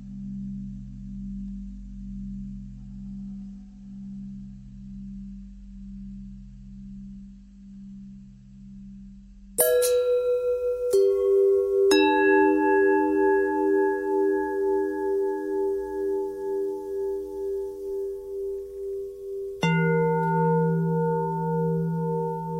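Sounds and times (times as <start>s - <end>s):
long pentatonic bell tones: 9.6s - 22.5s.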